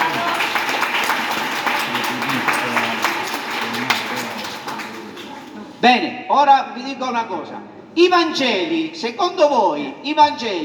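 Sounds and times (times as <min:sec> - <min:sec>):
audience applause: 0:00.0 - 0:05.5
speech: 0:05.8 - 0:10.6.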